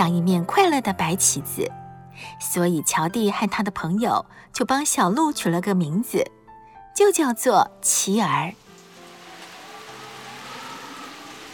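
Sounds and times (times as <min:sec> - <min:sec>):
speech: 0:00.0 - 0:06.4, 0:07.0 - 0:08.6
heavy rain pouring: 0:08.4 - 0:11.5.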